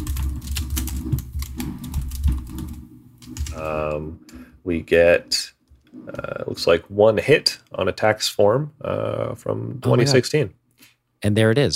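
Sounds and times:
typing on a computer keyboard: 0.0s - 4.4s
speech: 3.6s - 5.4s, 6.0s - 10.6s, 11.2s - 11.7s.

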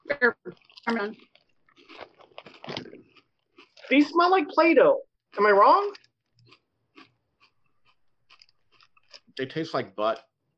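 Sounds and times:
speech: 0.2s - 1.3s, 3.9s - 6.0s, 9.4s - 10.3s
crunching pancetta and garlic flavored Pringles potato chips: 0.5s - 3.9s, 5.8s - 10.2s.

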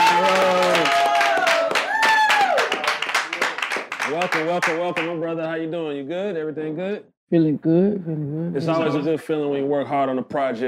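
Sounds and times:
cheering: 0.0s - 4.5s
small group clapping: 0.0s - 5.7s
speech: 4.2s - 10.6s.

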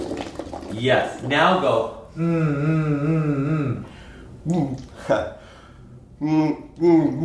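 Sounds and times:
bubbling water gurgle: 0.0s - 1.8s
speech: 0.7s - 5.4s, 6.2s - 7.2s
humming through a straw into water: 2.1s - 3.9s.

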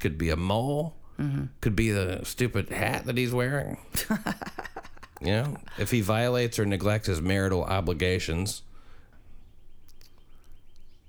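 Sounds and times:
speech: 0.0s - 4.6s, 5.2s - 8.7s
faint birds chirping: 0.0s - 11.0s
laughter: 3.9s - 6.1s
soft repeating tweet: 9.2s - 11.0s.

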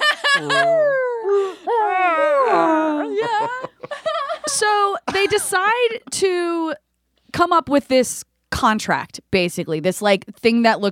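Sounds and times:
laughter: 0.0s - 5.7s
speech: 0.4s - 0.8s, 5.2s - 10.9s
person imitating zombie noises: 0.4s - 3.8s.

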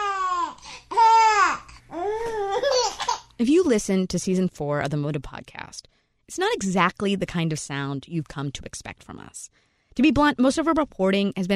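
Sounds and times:
baby laughing: 0.0s - 3.3s
speech: 3.4s - 11.5s.

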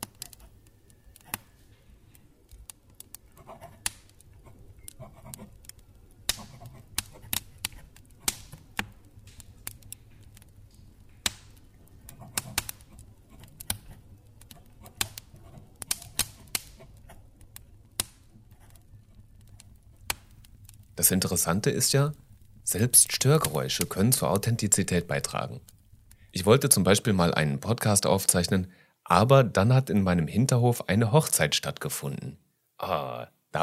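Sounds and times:
fireplace fire crackling: 0.0s - 33.6s
speech: 21.0s - 25.8s, 26.4s - 33.6s.

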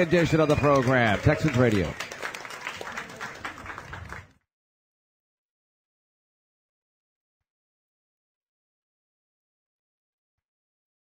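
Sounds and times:
speech: 0.0s - 2.1s
crowd of fans applauding: 0.0s - 4.4s.

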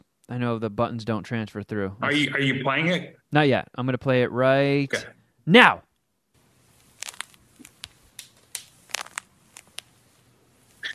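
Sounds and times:
speech: 0.3s - 5.9s
knee joints crunching and popping: 6.8s - 10.0s, 10.8s - 10.9s.

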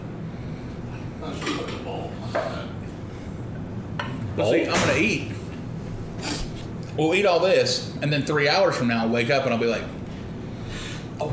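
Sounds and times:
low steady kitchen hum: 0.0s - 11.3s
speech: 1.2s - 2.8s, 4.4s - 5.4s, 7.0s - 10.0s
plates and cutlery clinking at a Thanksgiving meal: 1.3s - 2.6s.

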